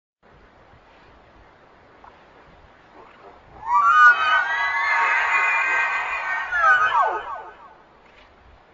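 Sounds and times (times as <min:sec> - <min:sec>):
wendigo roar: 0:03.6 - 0:07.6.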